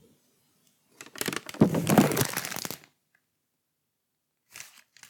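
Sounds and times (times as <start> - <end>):
paper crumpling: 1.0 - 2.8.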